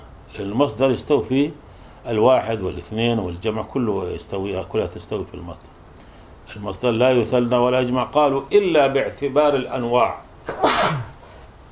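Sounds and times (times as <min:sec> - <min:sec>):
speech: 0:00.4 - 0:05.8, 0:06.5 - 0:11.0
person sneezing: 0:10.5 - 0:11.3.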